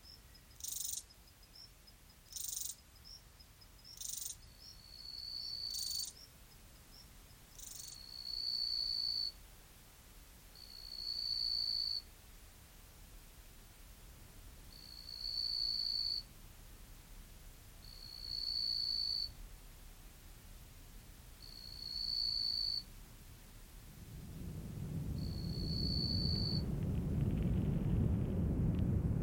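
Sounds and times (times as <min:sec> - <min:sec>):
insect-like chirps in the Namib desert: 0:00.0 - 0:09.4, 0:10.6 - 0:12.0, 0:14.7 - 0:16.3, 0:17.8 - 0:19.3, 0:21.4 - 0:22.9, 0:25.2 - 0:26.6
low rumbling in the Namib desert: 0:23.6 - 0:29.2.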